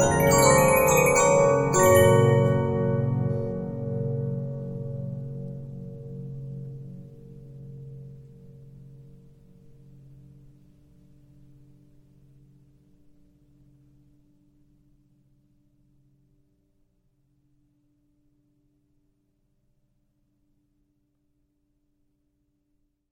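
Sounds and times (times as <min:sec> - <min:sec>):
Regina 15-inch disc music box: 0:00.0 - 0:04.5.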